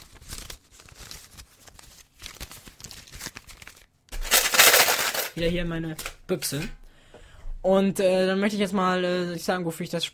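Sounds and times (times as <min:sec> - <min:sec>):
banknote crinkling being handled: 0:00.0 - 0:06.2
speech: 0:05.4 - 0:06.8, 0:07.6 - 0:10.1.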